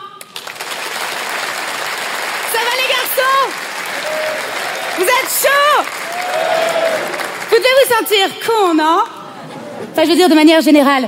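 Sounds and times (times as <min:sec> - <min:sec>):
audience applause: 0:00.2 - 0:08.2
speech: 0:03.2 - 0:09.1, 0:10.0 - 0:11.0.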